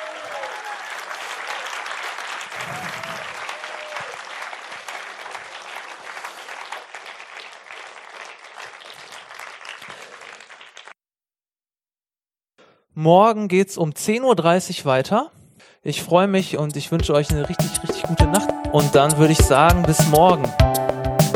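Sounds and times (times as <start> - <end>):
audience applause at a live event: 0.0 - 11.0
speech: 13.0 - 20.8.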